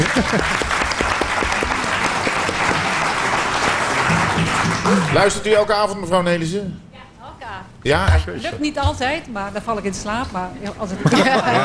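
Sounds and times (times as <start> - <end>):
laughter: 0.0 - 5.6, 10.8 - 11.6
small group applause: 0.0 - 5.6
speech: 0.2 - 0.7, 4.9 - 6.8, 7.8 - 11.6.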